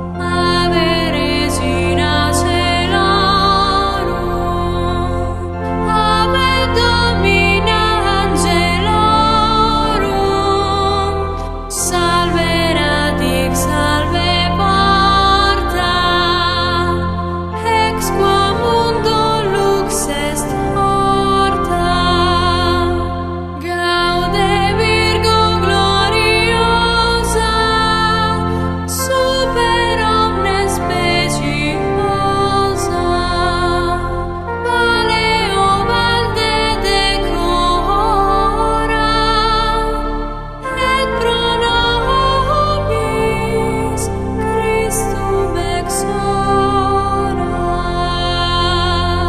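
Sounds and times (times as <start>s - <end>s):
Gregorian chant: 0.2s - 49.2s.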